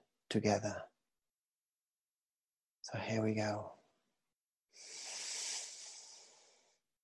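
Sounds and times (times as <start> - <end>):
speech: 0.3 - 0.9, 2.9 - 3.8
deep breath during a guided meditation: 4.7 - 6.8.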